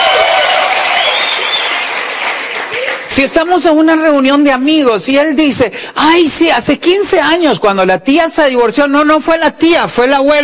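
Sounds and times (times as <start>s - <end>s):
audience applause: 0.0s - 3.1s
speech: 3.2s - 10.4s.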